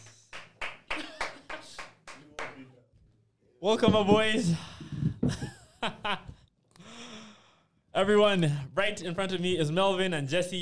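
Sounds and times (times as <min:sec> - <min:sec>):
applause, hands clapping: 0:00.0 - 0:02.7
speech: 0:03.6 - 0:04.8, 0:05.8 - 0:06.3, 0:08.0 - 0:10.6.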